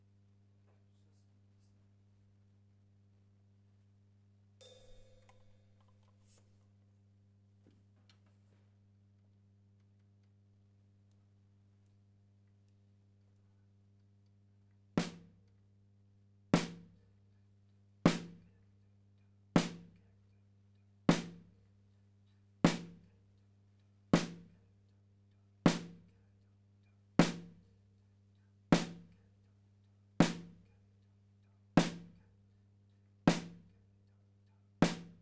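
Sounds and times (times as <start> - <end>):
snare drum: 4.6 - 6.2, 15.0 - 15.3, 16.6 - 17.0, 18.1 - 18.4, 19.6 - 20.0, 21.1 - 21.4, 22.7 - 23.1, 24.2 - 24.5, 25.7 - 26.1, 27.2 - 27.6, 28.8 - 29.2, 30.2 - 30.7, 31.8 - 32.2, 33.3 - 33.7, 34.8 - 35.1
kick drum: 16.6 - 17.0, 18.1 - 18.5, 21.1 - 21.6, 22.7 - 23.1, 24.2 - 24.6, 25.7 - 26.1, 27.2 - 27.7, 28.8 - 29.2, 30.2 - 30.7, 31.8 - 32.2, 33.3 - 33.7, 34.8 - 35.1.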